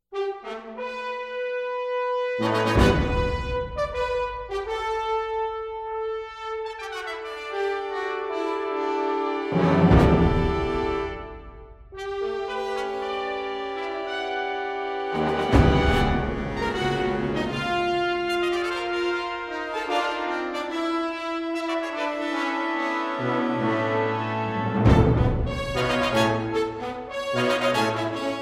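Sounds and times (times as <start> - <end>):
brass fanfare: 0.1 - 28.4.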